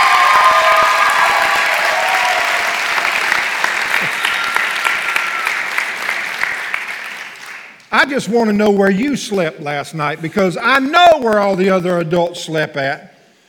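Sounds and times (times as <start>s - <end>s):
audience applause: 0.0s - 8.0s
speech: 8.1s - 13.1s.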